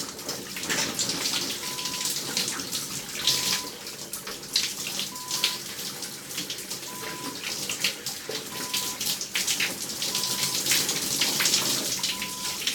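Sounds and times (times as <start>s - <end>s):
shower running: 0.0s - 12.7s.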